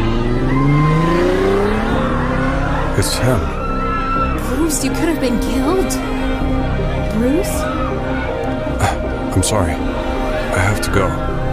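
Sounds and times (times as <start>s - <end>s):
car engine accelerating away: 0.0s - 4.5s
faint tire squeal: 0.0s - 4.8s
speech: 3.0s - 3.6s, 4.7s - 8.2s, 9.4s - 11.4s.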